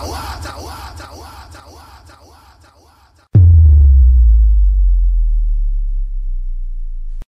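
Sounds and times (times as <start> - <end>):
DJ sound effect: 3.4 - 7.1.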